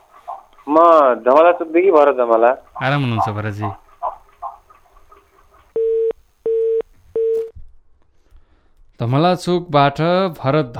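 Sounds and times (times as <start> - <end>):
speech: 0.7 - 3.8, 9.0 - 10.7
phone line busy tone after a dropped call: 5.8 - 7.5.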